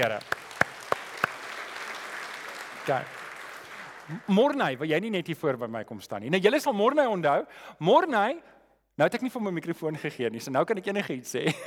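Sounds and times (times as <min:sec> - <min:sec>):
speech: 0:00.0 - 0:00.4, 0:02.9 - 0:03.2, 0:04.1 - 0:11.6
audience hand clapping: 0:00.0 - 0:04.8.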